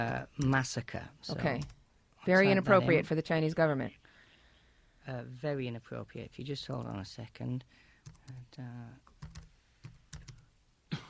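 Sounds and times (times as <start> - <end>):
speech: 0.0 - 4.0, 5.0 - 9.4
typing a search on a computer keyboard: 8.0 - 8.4, 9.0 - 10.5.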